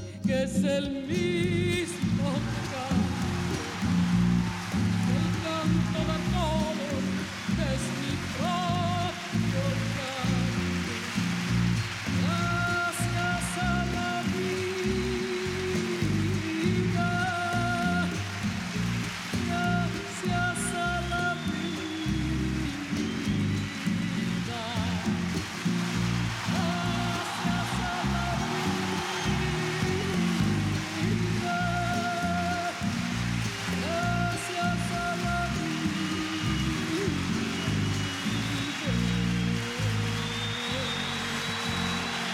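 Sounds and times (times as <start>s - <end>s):
speech: 0.3s - 3.1s
applause at a live recording: 1.1s - 42.3s.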